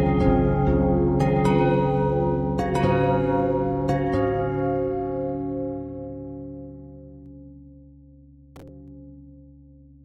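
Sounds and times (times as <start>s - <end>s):
pentatonic bells: 0.0s - 7.2s.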